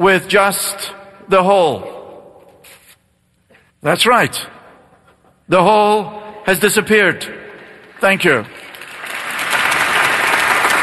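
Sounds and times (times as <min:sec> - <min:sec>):
speech: 0:00.0 - 0:02.0, 0:03.8 - 0:04.6, 0:05.5 - 0:07.4, 0:08.0 - 0:08.6
audience applause: 0:07.8 - 0:10.8.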